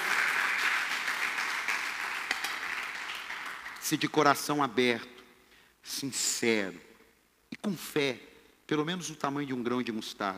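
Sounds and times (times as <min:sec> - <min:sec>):
audience applauding: 0:00.0 - 0:04.0
speech: 0:03.9 - 0:05.2, 0:05.8 - 0:06.9, 0:07.6 - 0:10.3.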